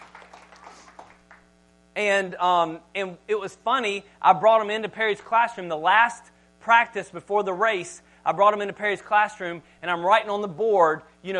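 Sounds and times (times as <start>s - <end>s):
faint scattered applause from a small audience: 0.0s - 1.5s
steady low electrical hum: 0.0s - 11.3s
speech: 2.0s - 11.3s.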